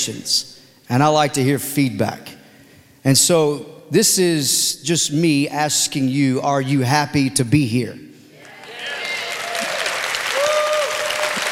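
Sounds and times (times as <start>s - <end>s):
speech: 0.0s - 2.4s, 3.0s - 8.1s
weak audience applause: 8.4s - 11.5s.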